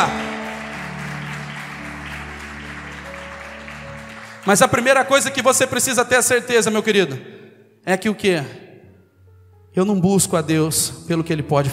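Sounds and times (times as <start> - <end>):
audience applause: 0.0 - 5.5
speech: 4.4 - 8.6, 9.8 - 11.7.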